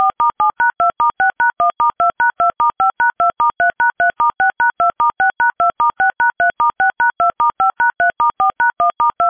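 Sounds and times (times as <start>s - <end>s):
dialing: 0.0s - 9.2s.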